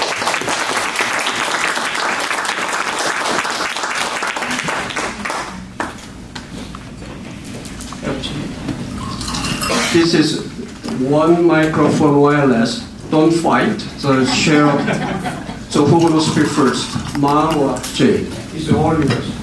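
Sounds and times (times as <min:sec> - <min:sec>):
crowd applauding: 0:00.0 - 0:06.0
speech: 0:10.0 - 0:10.4, 0:11.0 - 0:19.3
laughter: 0:14.0 - 0:15.9.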